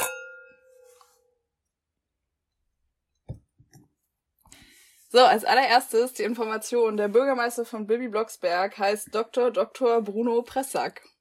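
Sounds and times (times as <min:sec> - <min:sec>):
glasses clinking in a toast: 0:00.0 - 0:01.1
speech: 0:05.1 - 0:11.1.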